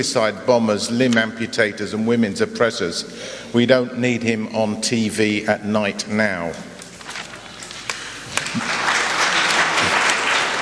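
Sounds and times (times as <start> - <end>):
speech: 0.0 - 6.7
audience applause: 8.3 - 10.5.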